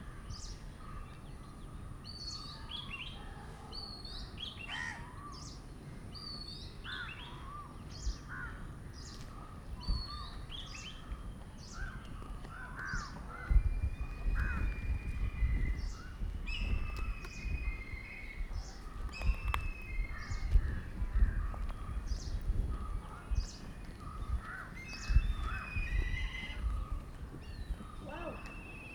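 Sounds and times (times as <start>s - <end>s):
calm birds calling in South India: 6.4s - 28.9s.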